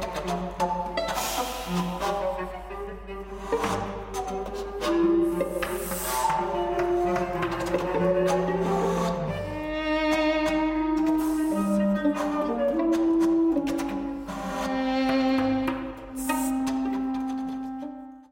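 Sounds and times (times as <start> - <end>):
cello: 0.0 - 18.2
clarinet: 0.0 - 18.2
flute: 0.0 - 18.2
violin: 0.0 - 18.2.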